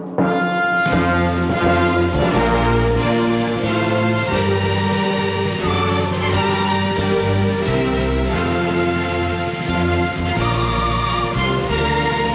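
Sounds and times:
national anthem in traditional version in B flat: 0.1s - 12.3s.

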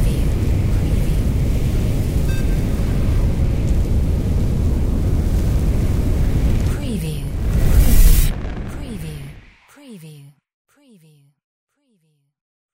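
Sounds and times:
sci-fi fire spell: 0.0s - 9.7s.

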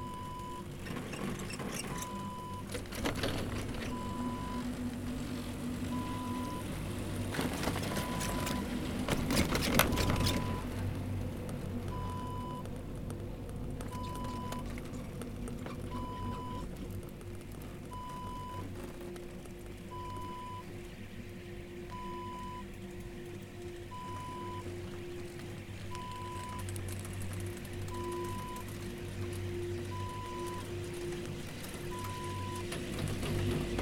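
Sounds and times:
ski chair lift ride: 0.0s - 33.8s.

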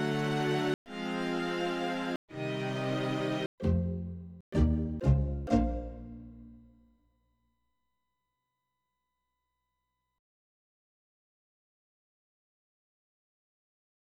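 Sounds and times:
Korg M3 synthesizer: 0.0s - 6.7s.

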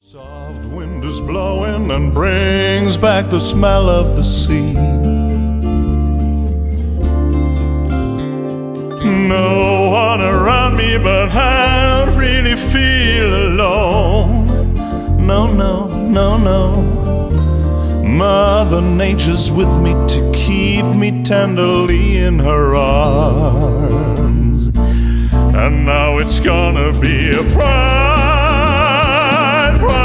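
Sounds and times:
bright lovely summerday jazzy music: 0.1s - 30.0s.

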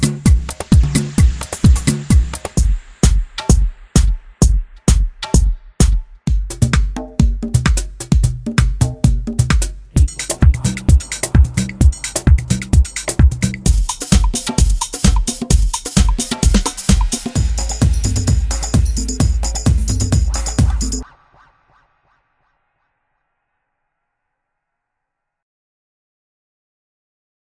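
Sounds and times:
club music: 0.0s - 21.2s.

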